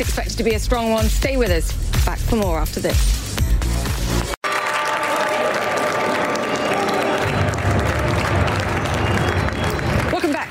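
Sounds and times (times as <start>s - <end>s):
speech: 0.0s - 3.2s
people clapping at the New York Stock Exchange opening: 3.8s - 10.4s.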